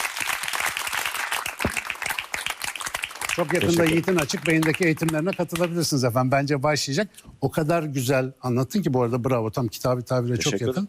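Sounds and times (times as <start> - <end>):
applause: 0.0 - 5.9
speech: 3.4 - 10.8.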